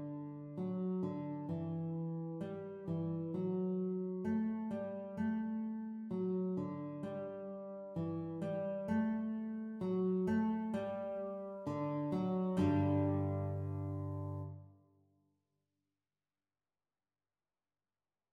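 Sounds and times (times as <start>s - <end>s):
guitar duet playalong practice: 0.0s - 14.6s.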